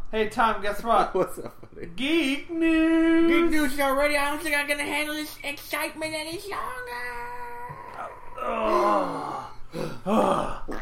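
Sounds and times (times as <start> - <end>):
speech: 0.1 - 7.2, 8.5 - 10.8
mouth fart blown through the lips: 10.3 - 10.8.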